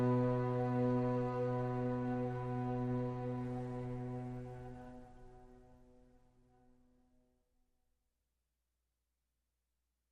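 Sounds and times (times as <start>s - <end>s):
strings: 0.0s - 5.7s.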